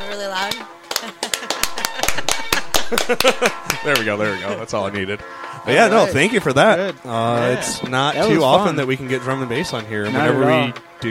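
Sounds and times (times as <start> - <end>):
speech: 0.1 - 1.2, 2.9 - 11.1
slow hand clap: 0.5 - 4.2
laughter: 0.9 - 10.7.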